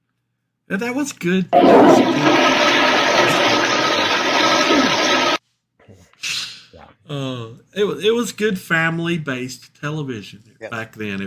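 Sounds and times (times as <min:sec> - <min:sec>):
speech: 0:00.7 - 0:02.8, 0:07.1 - 0:11.2
toilet flushing: 0:01.6 - 0:05.4.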